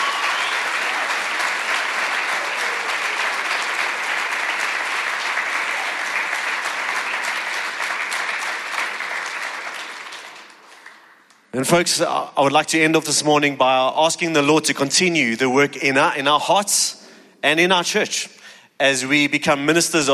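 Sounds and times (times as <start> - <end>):
crowd applause: 0.0 - 11.2
speech: 11.6 - 20.1.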